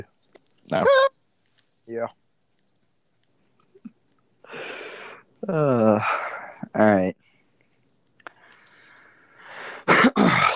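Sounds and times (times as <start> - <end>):
speech: 0.0 - 1.2, 1.9 - 2.2, 5.4 - 7.3
cough into microphone: 9.8 - 10.5.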